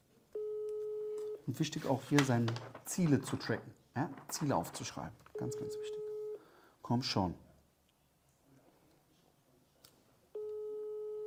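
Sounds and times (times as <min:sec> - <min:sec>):
faint noise: 0:00.0 - 0:11.2
telephone ringing tone on a call: 0:00.4 - 0:01.4, 0:05.3 - 0:06.4, 0:10.4 - 0:11.2
speech: 0:01.5 - 0:06.0, 0:06.9 - 0:07.5.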